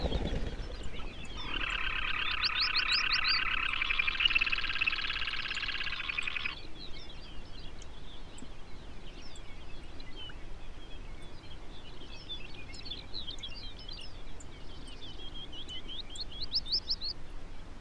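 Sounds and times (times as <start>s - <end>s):
low steady rumble of wind: 0.0s - 4.6s
Arctic birdsong of ptarmigan, longspurs, rough legged hawks, phalarope and bluethroat: 0.0s - 17.7s.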